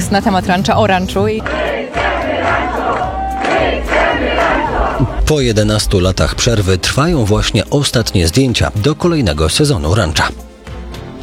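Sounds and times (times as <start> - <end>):
speech: 0.1 - 1.6, 5.3 - 10.4
low thumping beats: 1.2 - 8.6
crowd of fans singing and chanting: 1.4 - 7.3
shouts and cheers: 1.5 - 5.3.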